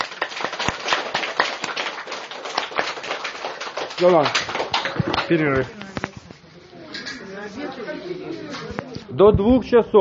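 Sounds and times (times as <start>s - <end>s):
audience clapping hands in a seminar setting: 0.0s - 6.1s
speech: 4.0s - 5.8s, 9.1s - 9.9s.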